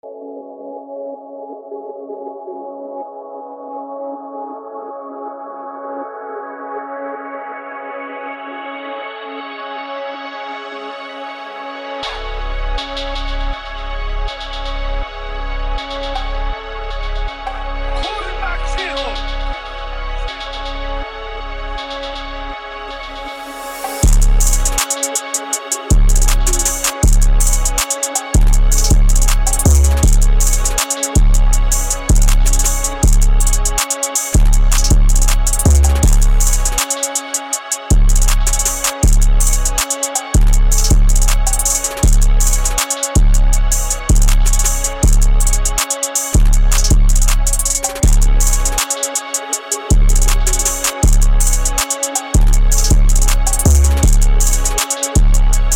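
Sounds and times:
diegetic trap song: 11.2 - 55.7.

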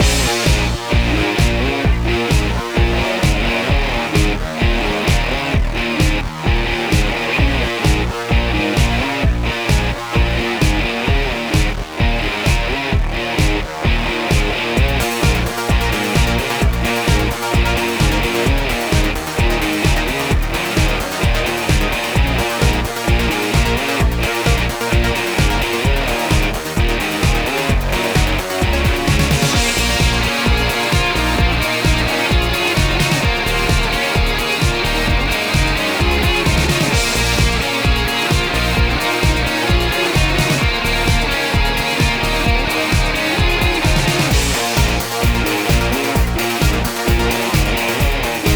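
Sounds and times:
drum beat: 0.0 - 48.5.

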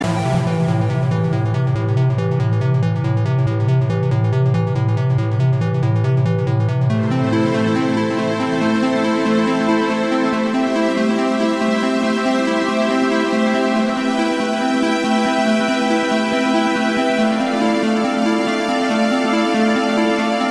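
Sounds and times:
intro music: 0.0 - 20.4.

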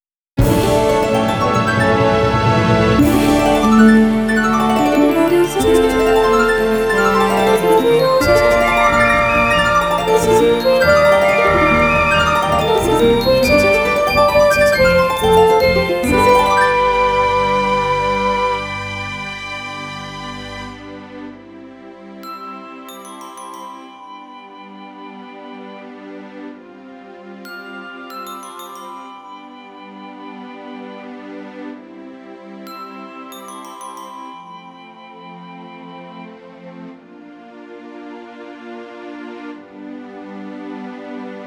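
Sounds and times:
harp performance: 0.4 - 21.3.

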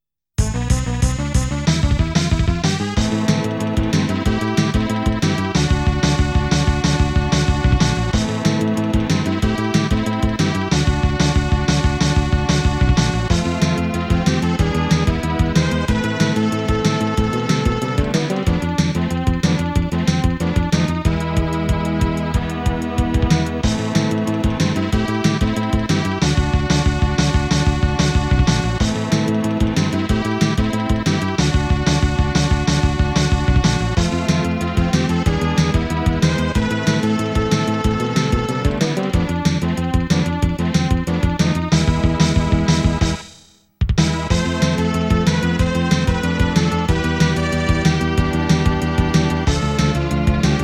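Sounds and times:
battle music: 0.4 - 50.6.

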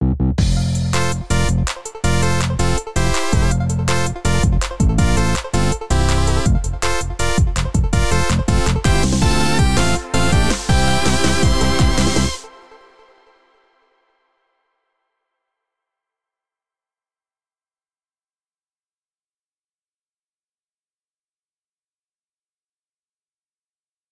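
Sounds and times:
music intro loop with reverb tail: 0.4 - 13.5.

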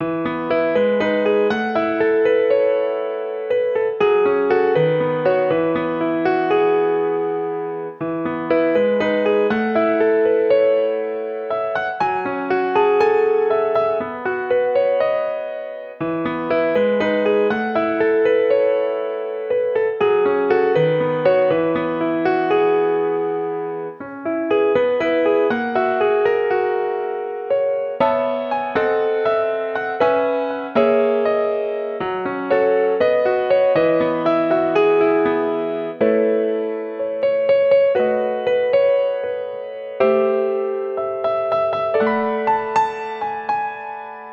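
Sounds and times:
piano: 0.0 - 44.3.

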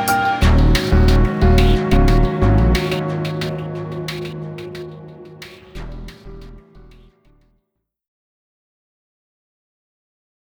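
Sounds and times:
unsettling atmosphere: 0.2 - 7.4.

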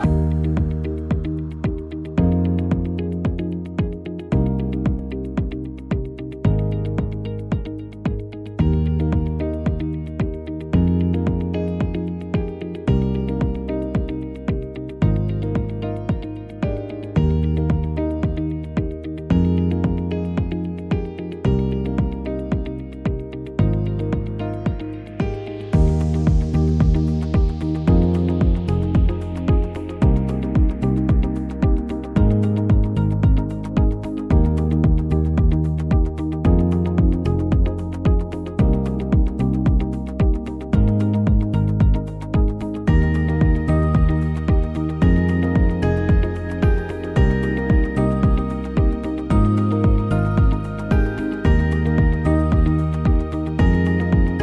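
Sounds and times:
inspirational corporate background music: 0.0 - 54.4.

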